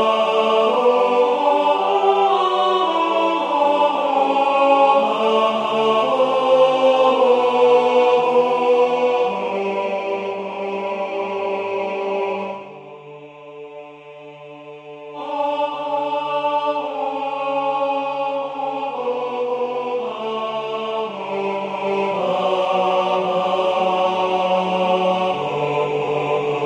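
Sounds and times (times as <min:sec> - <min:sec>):
tenor singing sacred music: 0:00.0 - 0:26.6.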